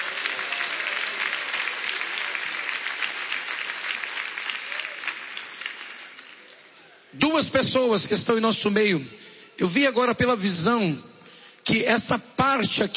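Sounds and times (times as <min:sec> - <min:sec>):
audience applauding: 0:00.0 - 0:07.1
speech: 0:07.2 - 0:11.1, 0:11.7 - 0:12.9.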